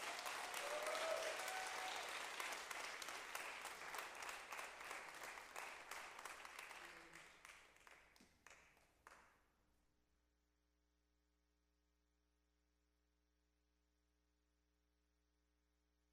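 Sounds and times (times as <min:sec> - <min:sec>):
church congregation applauding to welcome a pastor to the pulpit: 0:00.0 - 0:09.2.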